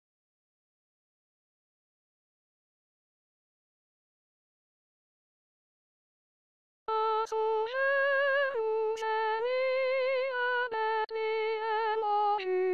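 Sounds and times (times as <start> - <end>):
soprano singing: 6.9 - 12.7.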